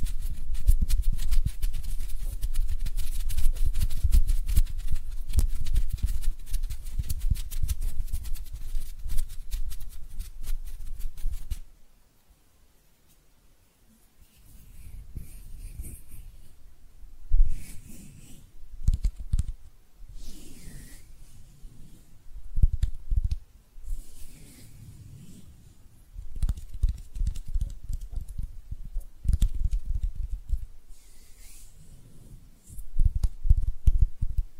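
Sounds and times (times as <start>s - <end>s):
hands scratching and rubbing: 0.0s - 11.7s, 14.2s - 16.6s, 17.4s - 34.5s.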